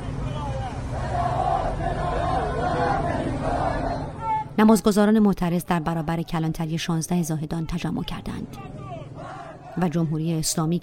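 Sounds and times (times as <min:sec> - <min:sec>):
protesting crowd shouting: 0:00.0 - 0:04.6, 0:07.6 - 0:10.0
speech: 0:04.6 - 0:08.8, 0:09.8 - 0:10.8.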